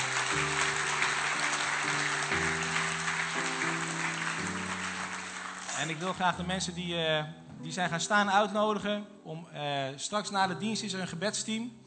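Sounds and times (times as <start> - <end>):
audience applause: 0.0 - 6.2
speech: 5.8 - 11.8.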